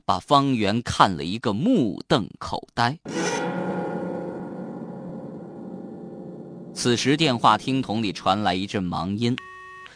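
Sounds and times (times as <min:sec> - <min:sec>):
speech: 0:00.1 - 0:03.6, 0:06.8 - 0:09.5
ceiling fan blades scraping across a concrete floor: 0:03.1 - 0:07.7.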